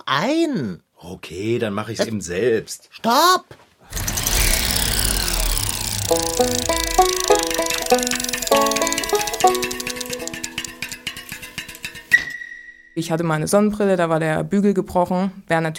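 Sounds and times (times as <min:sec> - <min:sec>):
speech: 0:00.1 - 0:03.6, 0:06.1 - 0:07.0, 0:13.0 - 0:15.7
printer running: 0:04.0 - 0:10.5.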